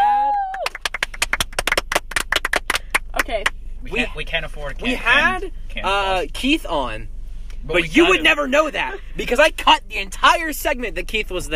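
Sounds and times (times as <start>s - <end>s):
hand clapping: 0.3s - 3.6s
speech: 3.3s - 11.5s.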